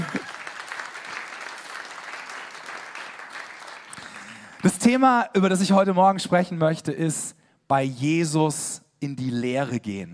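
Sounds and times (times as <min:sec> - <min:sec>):
audience applause: 0:00.0 - 0:04.7
speech: 0:04.6 - 0:10.1.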